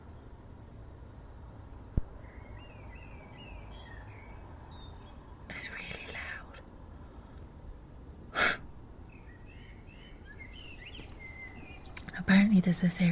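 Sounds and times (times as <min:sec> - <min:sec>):
low steady rumble: 0:00.0 - 0:13.1
bird singing at night: 0:02.1 - 0:07.1, 0:09.0 - 0:13.1
speech: 0:12.6 - 0:13.1.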